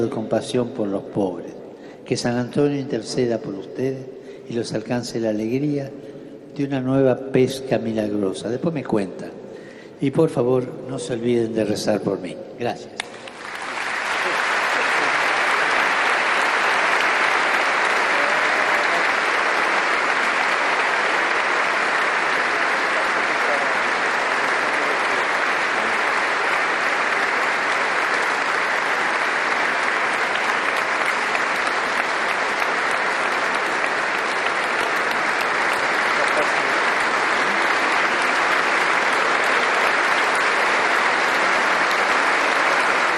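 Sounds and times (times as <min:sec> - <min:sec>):
speech: 0:00.0 - 0:09.4, 0:10.0 - 0:13.1
long applause from large crowd: 0:13.0 - 0:43.1.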